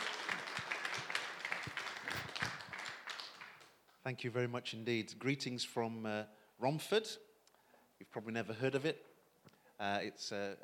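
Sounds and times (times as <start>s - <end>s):
audience at a church gathering clapping to welcome a speaker: 0.0s - 4.0s
speech: 4.0s - 7.3s, 8.0s - 9.1s, 9.8s - 10.6s.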